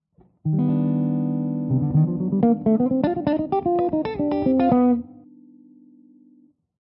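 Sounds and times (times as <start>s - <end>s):
Lydian jazz melodic lines: 0.5s - 5.1s.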